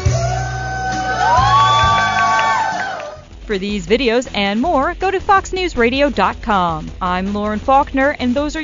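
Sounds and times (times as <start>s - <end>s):
shopping center customers cheering and applauding: 0.1s - 3.3s
speech: 3.5s - 8.6s.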